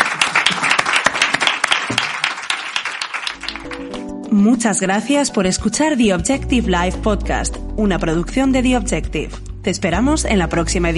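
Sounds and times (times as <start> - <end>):
audience applause: 0.0 - 4.0
speech: 4.3 - 10.9.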